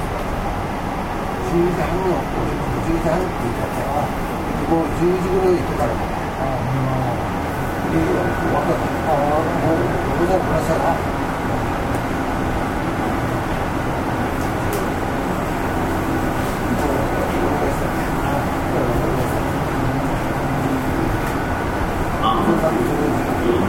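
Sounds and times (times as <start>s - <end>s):
Nishitetsu 5000 series local train running rumble on Omuta Line: 0.0s - 23.6s
faint murmuring voices: 1.4s - 23.6s.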